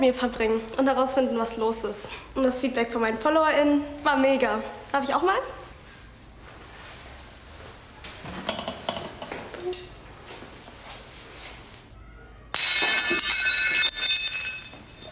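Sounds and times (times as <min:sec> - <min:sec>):
speech: 0:00.0 - 0:05.6
dishes smashing into shards: 0:12.6 - 0:15.1.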